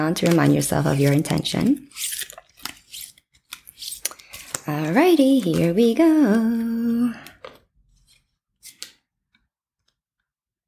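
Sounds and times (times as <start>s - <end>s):
speech: 0.0s - 2.2s, 4.7s - 7.3s
deck of cards being shuffled: 0.2s - 4.7s.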